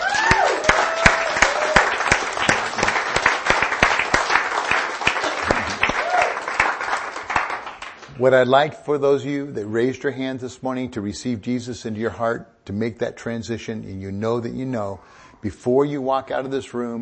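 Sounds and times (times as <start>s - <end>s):
audience applause: 0.0s - 8.1s
speech: 8.2s - 17.0s.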